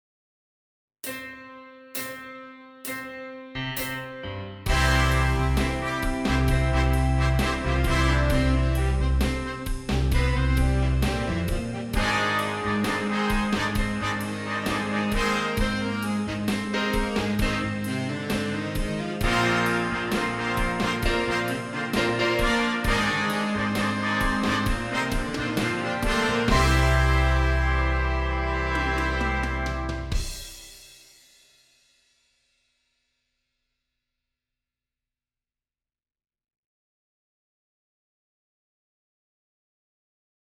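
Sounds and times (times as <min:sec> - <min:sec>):
horns in fifths: 0:03.8 - 0:30.7.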